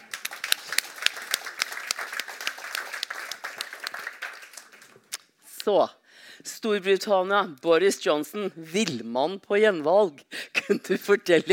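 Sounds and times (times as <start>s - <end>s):
audience applause: 0.0s - 5.1s
speech: 5.6s - 11.5s.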